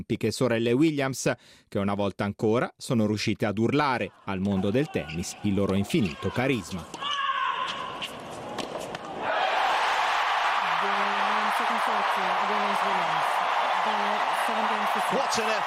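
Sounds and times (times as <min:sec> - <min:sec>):
speech: 0:00.0 - 0:07.2
tennis stadium crowd cheering at Arthur Ashe: 0:04.1 - 0:15.6.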